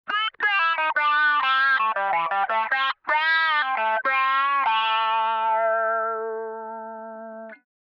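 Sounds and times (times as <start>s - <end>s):
talkbox: 0.1s - 5.4s.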